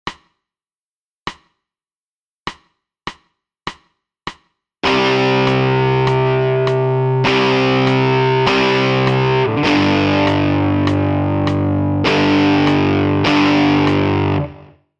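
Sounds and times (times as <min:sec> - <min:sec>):
guitar: 0:04.8 - 0:14.8.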